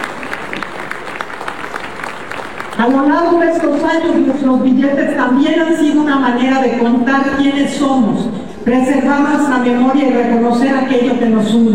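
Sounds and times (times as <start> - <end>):
audience applause for a woman president at a public event: 0.0 - 3.0
speech: 2.8 - 11.7.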